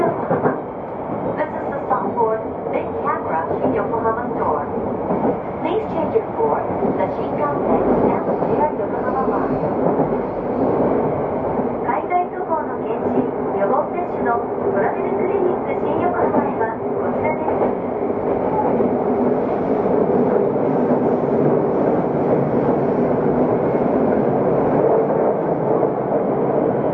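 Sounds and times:
Yokohama Municipal Subway 3000V train rumble between Shonandai and Azamino: 0.0 - 26.9.

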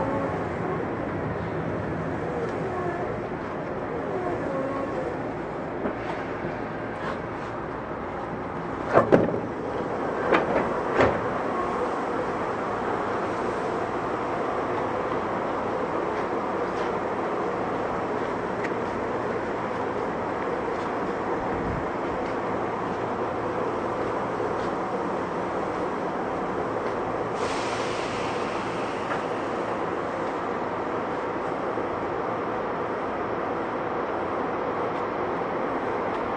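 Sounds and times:
Tokyu 8500 series train wheels and motors rumbling: 0.0 - 36.3
brief hiss: 27.4 - 29.5.

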